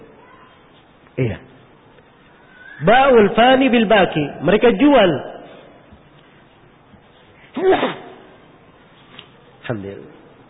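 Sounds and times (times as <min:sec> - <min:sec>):
speech: 0:01.2 - 0:01.5, 0:02.8 - 0:05.4, 0:09.7 - 0:10.2
sneeze: 0:07.5 - 0:08.4.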